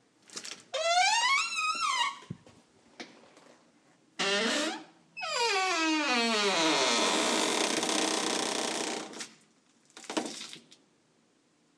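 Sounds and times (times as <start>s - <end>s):
squeaky door: 0.8s - 2.3s, 4.2s - 9.2s.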